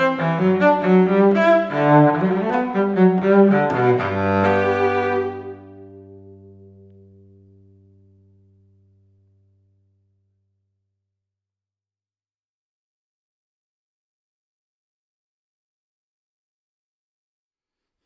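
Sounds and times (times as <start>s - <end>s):
solo cello piece: 0.0s - 9.6s.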